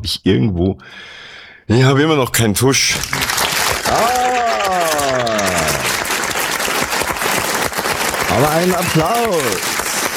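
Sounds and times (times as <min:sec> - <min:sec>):
speech: 0:00.0 - 0:03.3, 0:03.9 - 0:05.6, 0:08.3 - 0:09.8
crowd clapping: 0:02.9 - 0:10.1.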